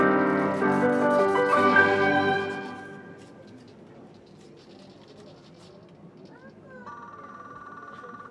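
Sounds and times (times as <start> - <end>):
automaton orchestra playing: 0.0 - 3.3.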